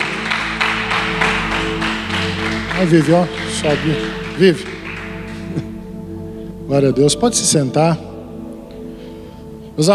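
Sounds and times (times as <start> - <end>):
audience applause: 0.0 - 5.7
speech: 2.8 - 4.8, 6.7 - 8.1, 9.8 - 9.9.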